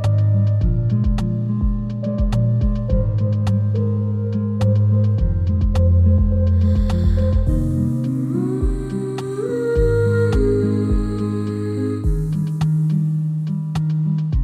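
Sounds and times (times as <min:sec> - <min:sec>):
ensemble playing in E flat major: 0:00.0 - 0:14.3.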